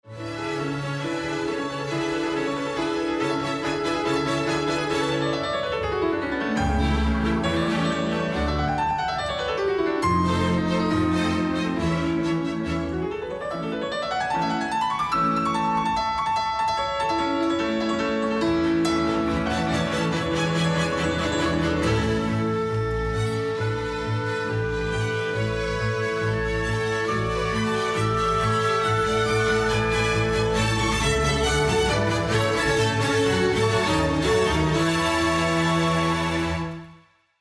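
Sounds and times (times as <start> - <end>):
mixed classical music: 0.0 - 37.3.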